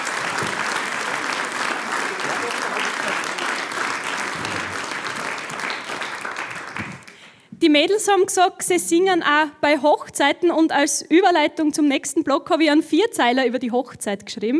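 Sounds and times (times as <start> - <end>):
audience applause: 0.0 - 7.4
speech: 7.6 - 14.5.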